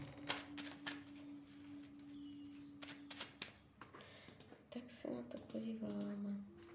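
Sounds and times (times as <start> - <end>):
tarot cards being shuffled and laid out: 0.0 - 3.6
speech: 4.7 - 6.6.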